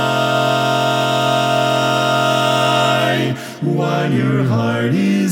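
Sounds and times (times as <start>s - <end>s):
quartet playing: 0.0s - 5.2s.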